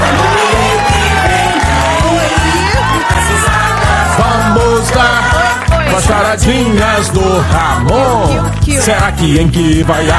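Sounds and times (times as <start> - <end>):
crowd cheering and applauding: 0.0 - 10.1
rhythmic low thumping: 0.0 - 10.1
whoops: 0.1 - 4.2
speech: 6.1 - 10.1.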